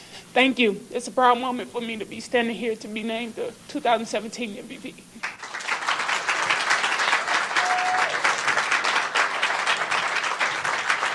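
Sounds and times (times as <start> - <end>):
speech: 0.4 - 5.4
audience applause: 5.2 - 11.1.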